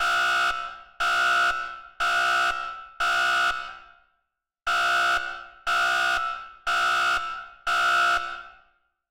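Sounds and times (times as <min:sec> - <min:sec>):
alarm: 0:00.0 - 0:03.8, 0:04.7 - 0:08.8.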